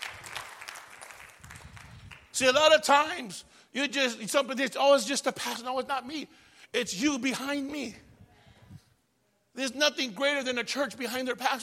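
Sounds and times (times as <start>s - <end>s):
audience clapping: 0.0s - 2.4s
speech: 2.4s - 8.1s, 9.6s - 11.6s.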